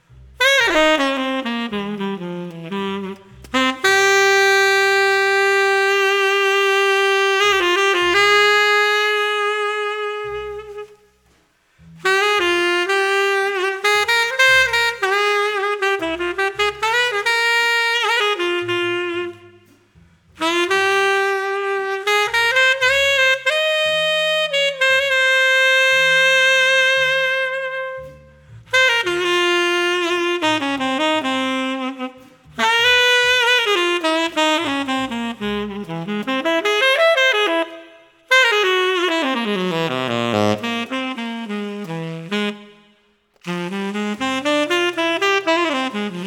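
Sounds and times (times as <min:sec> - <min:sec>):
standard jazz ballad: 0:00.0 - 0:46.2.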